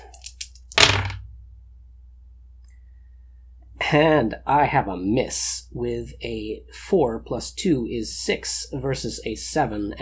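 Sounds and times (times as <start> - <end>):
dice rolling on a table: 0.0 - 1.2
speech: 3.9 - 9.9.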